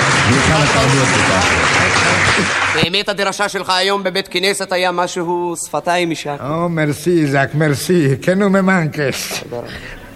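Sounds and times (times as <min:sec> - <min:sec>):
audience applause effect in a comedy sketch: 0:00.0 - 0:03.0
speech: 0:00.3 - 0:10.0.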